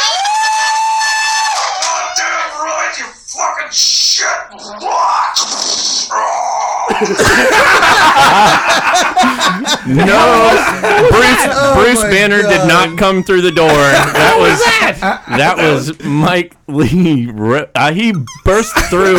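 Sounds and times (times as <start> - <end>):
live audience cheering and making noise: 0.0 - 2.2, 8.2 - 15.0
speech: 3.0 - 19.1
laughter: 6.9 - 16.3, 18.0 - 19.1.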